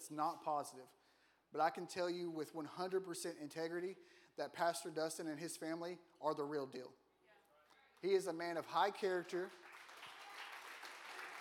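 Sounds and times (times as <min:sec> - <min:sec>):
speech: 0:00.0 - 0:07.0, 0:08.0 - 0:09.7
faint audience clapping: 0:08.0 - 0:11.3.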